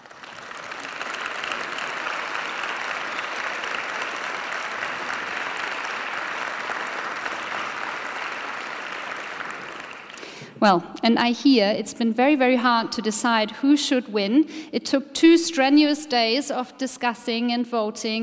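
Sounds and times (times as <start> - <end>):
audience applause: 0.0 - 10.4
speech: 10.6 - 18.2.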